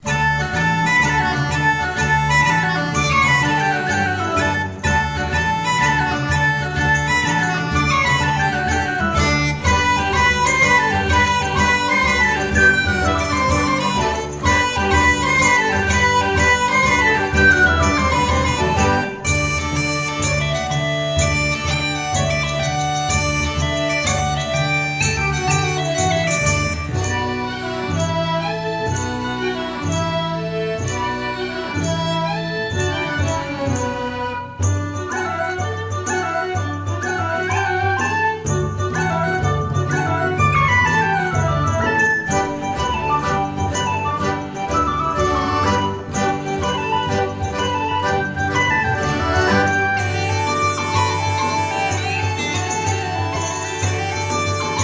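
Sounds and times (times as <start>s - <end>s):
jig tune: 0.0s - 54.8s.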